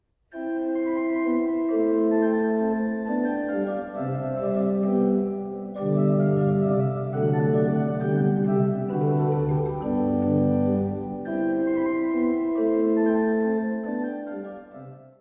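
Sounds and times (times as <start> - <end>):
minuet and trio in C major: 0.3 - 15.1.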